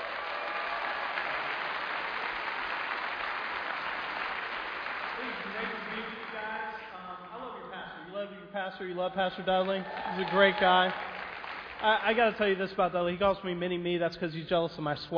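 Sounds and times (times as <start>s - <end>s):
audience applause: 0.0s - 6.8s, 9.5s - 12.8s
speech: 8.5s - 11.2s, 11.8s - 15.1s.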